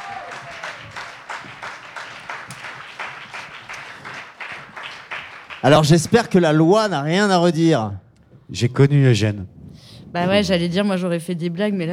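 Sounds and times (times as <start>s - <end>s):
audience applause: 0.0s - 6.4s
speech: 5.6s - 11.9s.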